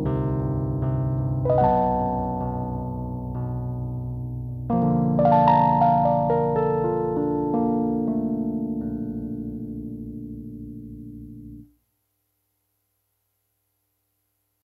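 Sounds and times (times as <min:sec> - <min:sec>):
piano: 0:00.0 - 0:11.7.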